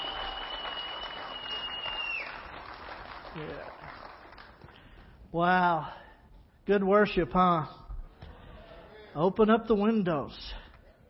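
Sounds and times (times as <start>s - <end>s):
audience clapping: 0.0s - 5.2s
speech: 3.4s - 4.0s, 5.3s - 6.0s, 6.7s - 7.8s, 9.2s - 10.6s.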